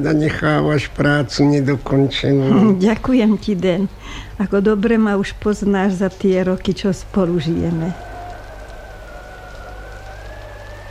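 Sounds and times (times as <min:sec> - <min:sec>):
speech: 0:00.0 - 0:08.1
howling storm wind: 0:05.5 - 0:10.9.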